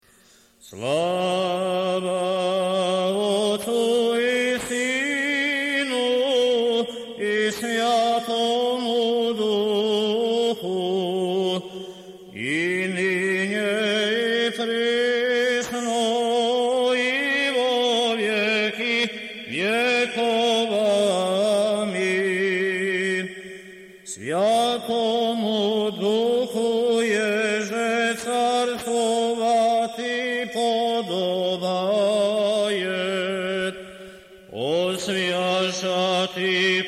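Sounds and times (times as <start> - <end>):
church chant in the second tone: 0.6 - 36.8.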